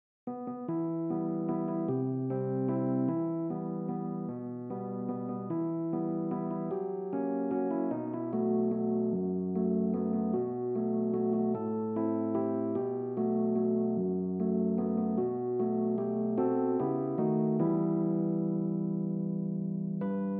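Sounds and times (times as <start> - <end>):
keyboard: 0.3 - 20.3.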